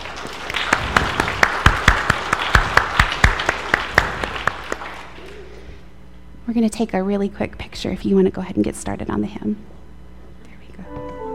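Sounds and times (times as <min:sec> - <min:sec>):
audience applause: 0:00.0 - 0:05.7
speech: 0:06.5 - 0:09.8.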